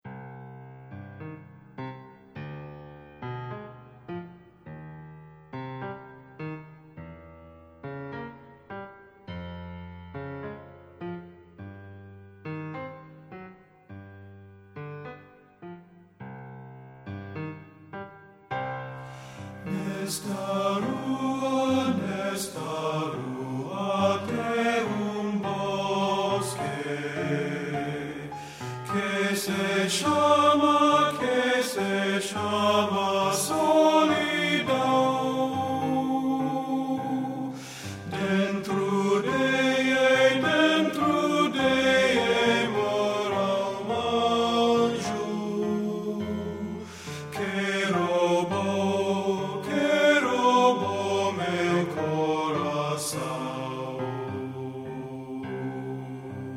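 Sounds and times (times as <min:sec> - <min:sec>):
tenor singing: 0:19.6 - 0:56.5.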